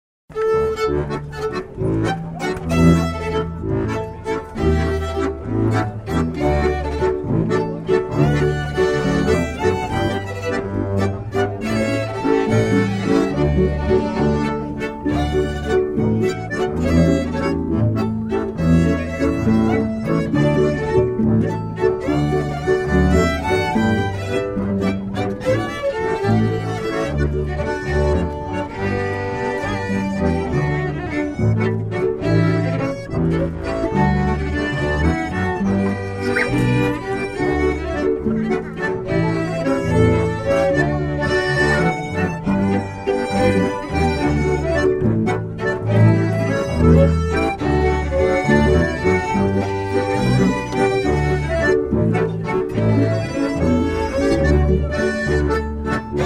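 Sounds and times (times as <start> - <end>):
waltz music: 0.3 - 56.2.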